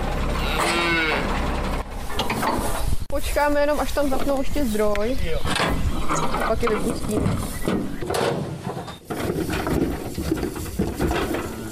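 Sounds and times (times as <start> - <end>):
rumbling noise: 0.0 - 11.6
Scottish Highland cattle mooing while unloaded from a truck: 0.3 - 1.4, 11.2 - 11.6
speech: 3.3 - 8.4.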